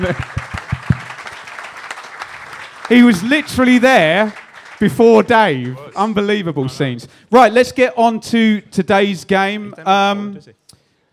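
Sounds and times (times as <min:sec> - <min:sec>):
speech: 0:00.0 - 0:00.5, 0:02.9 - 0:10.6
crowd applauding: 0:00.0 - 0:06.2.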